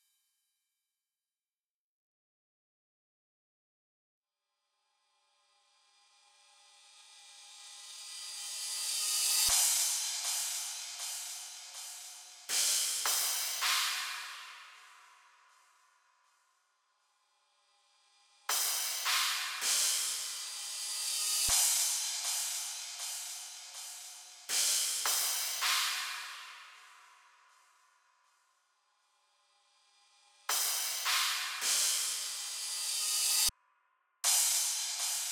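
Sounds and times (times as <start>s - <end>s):
drums: 7.5s - 15.1s, 18.5s - 27.1s, 30.4s - 33.5s, 34.3s - 35.3s.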